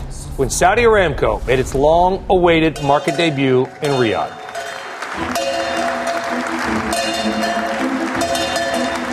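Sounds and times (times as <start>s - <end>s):
speech: 0.4s - 4.4s
bright metallic bell ringing: 2.9s - 9.1s
crowd applause and cheering at stock market debut: 3.0s - 9.1s.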